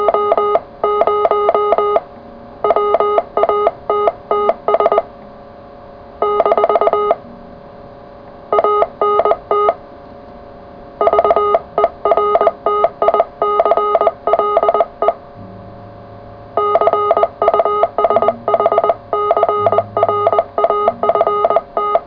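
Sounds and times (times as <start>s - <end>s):
CW Morse code radio contact: 0.0s - 5.1s, 6.2s - 7.2s, 8.5s - 9.8s, 11.0s - 15.2s, 16.6s - 22.0s.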